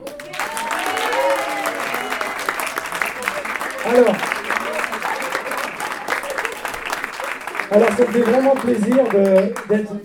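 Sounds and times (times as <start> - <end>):
audience applause: 0.0 - 10.0
whoops and shouts: 0.3 - 2.6
speech: 3.8 - 4.3, 7.8 - 10.0.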